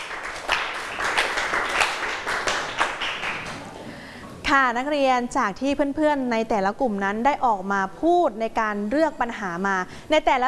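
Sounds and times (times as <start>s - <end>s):
room full of people clapping: 0.0s - 3.9s
speech: 4.5s - 10.4s.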